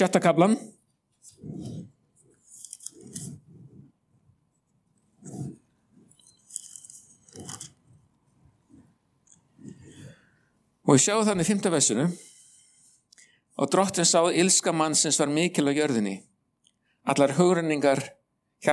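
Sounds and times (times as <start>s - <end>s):
speech: 0.0s - 1.7s, 10.9s - 12.3s, 13.6s - 16.3s, 17.0s - 18.7s
Bible pages being flipped to the Book of Genesis: 1.1s - 3.9s, 5.0s - 9.8s.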